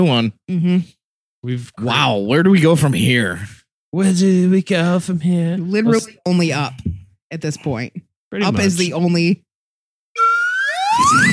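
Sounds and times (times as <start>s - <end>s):
speech: 0.0s - 9.4s, 11.0s - 11.3s
slide whistle rising glide: 10.2s - 11.3s.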